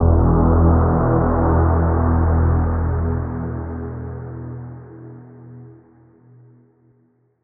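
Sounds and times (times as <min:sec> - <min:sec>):
deep saw synth note in E: 0:00.0 - 0:05.0.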